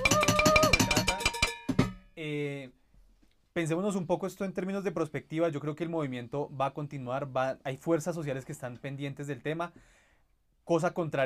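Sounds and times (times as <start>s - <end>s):
banging on cooking pots in a cacerolazo: 0.0s - 2.0s
speech: 2.2s - 2.8s, 3.6s - 10.0s, 10.7s - 11.2s.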